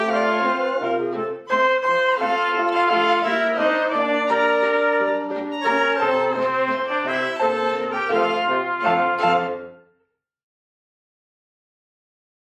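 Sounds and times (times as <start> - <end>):
waltz music: 0.0 - 9.9.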